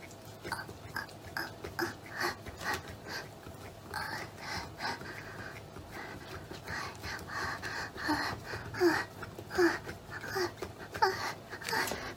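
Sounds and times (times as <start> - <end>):
young girl moaning voice: 0.5 - 3.3, 3.9 - 5.1, 7.3 - 12.1.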